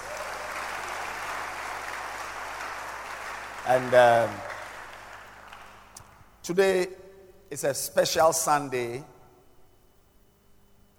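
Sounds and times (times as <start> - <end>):
audience clapping hands: 0.0 - 6.2
speech: 3.7 - 4.5, 6.4 - 9.1.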